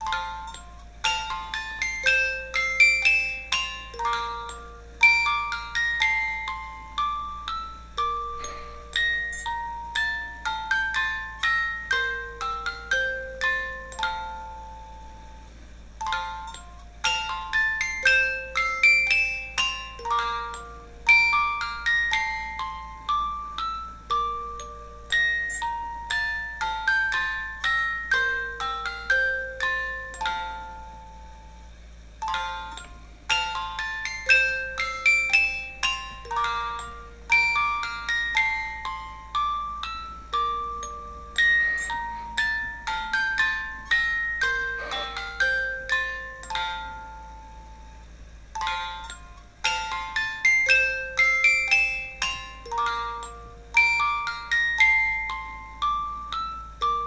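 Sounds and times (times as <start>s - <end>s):
large music box: 0.0s - 57.0s.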